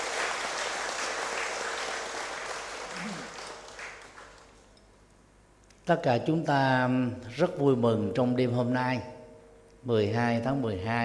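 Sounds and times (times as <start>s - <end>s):
big round of applause: 0.0s - 4.8s
speech: 5.9s - 9.1s, 9.8s - 11.0s.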